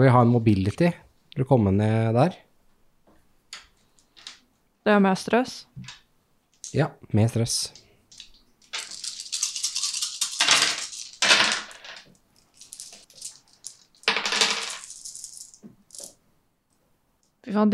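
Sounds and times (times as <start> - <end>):
speech: 0.0 - 2.5, 4.8 - 6.0, 6.7 - 7.8, 17.5 - 17.7
dice rolling on table: 7.8 - 16.2.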